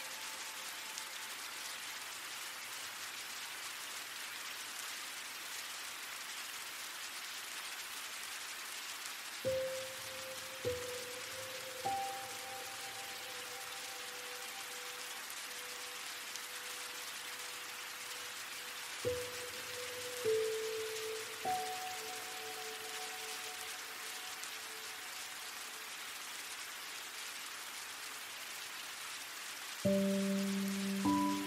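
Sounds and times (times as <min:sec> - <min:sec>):
relaxing music: 0:00.0 - 0:01.8, 0:09.4 - 0:25.8, 0:29.8 - 0:31.4
rain: 0:00.0 - 0:31.4.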